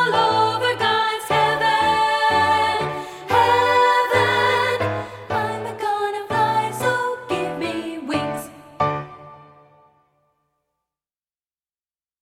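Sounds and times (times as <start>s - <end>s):
SSA soprano treble voice singing: 0.0s - 8.9s.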